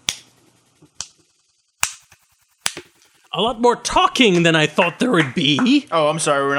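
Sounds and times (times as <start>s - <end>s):
speech: 3.4s - 6.5s
single condescending hand clap: 5.2s - 5.8s.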